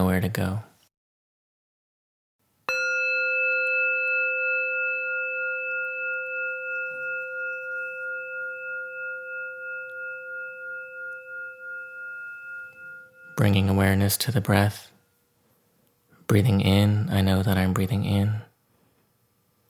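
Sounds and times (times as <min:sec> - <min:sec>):
speech: 0:00.1 - 0:00.7, 0:13.4 - 0:14.9, 0:16.3 - 0:18.5
meditation bell ringing: 0:02.7 - 0:14.8.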